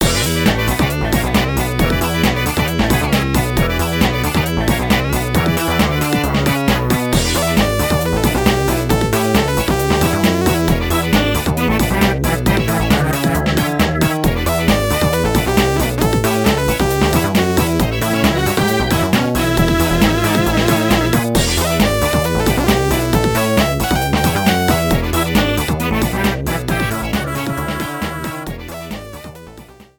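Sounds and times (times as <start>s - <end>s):
background music: 0.0s - 29.9s.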